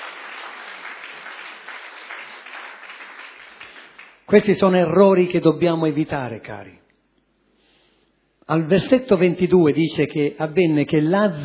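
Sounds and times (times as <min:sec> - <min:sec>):
loud audience applause: 0:00.0 - 0:04.3
speech: 0:04.3 - 0:06.8, 0:08.5 - 0:11.4.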